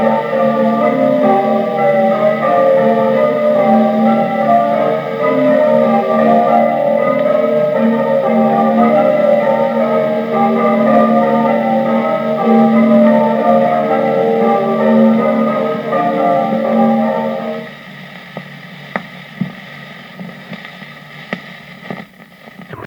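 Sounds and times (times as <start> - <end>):
bells ringing changes: 0.0 - 17.7.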